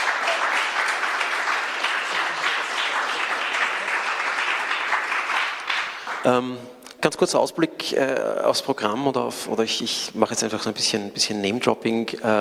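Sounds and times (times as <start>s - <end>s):
audience applause: 0.0s - 6.4s
speech: 6.2s - 12.3s.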